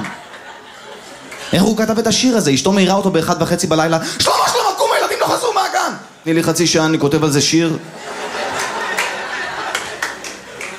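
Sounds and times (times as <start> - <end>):
laughter: 0.0 - 1.6, 7.8 - 10.7
speech: 1.5 - 4.6, 5.3 - 8.1
crowd applauding: 8.3 - 10.7.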